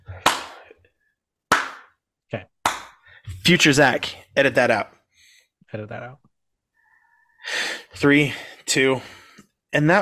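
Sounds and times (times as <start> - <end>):
repeated hand clapping: 0.1 - 0.7, 1.5 - 2.0, 2.6 - 3.1
speech: 2.3 - 2.5, 3.4 - 5.0, 5.7 - 6.3, 7.4 - 10.0.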